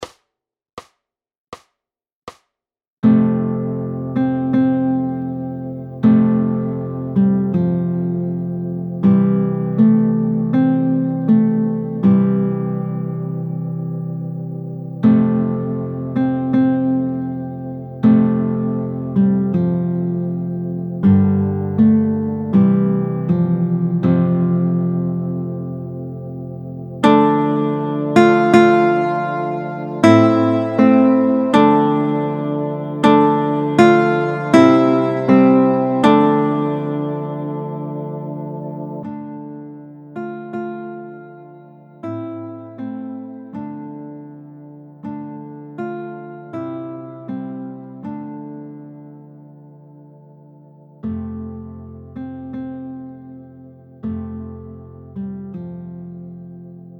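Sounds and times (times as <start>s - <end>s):
largo music: 3.1s - 44.0s.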